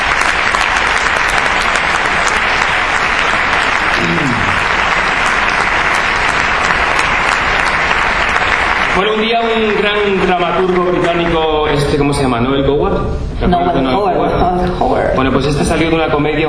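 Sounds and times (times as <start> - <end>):
audience applause: 0.0 - 12.0
speech: 9.6 - 16.4.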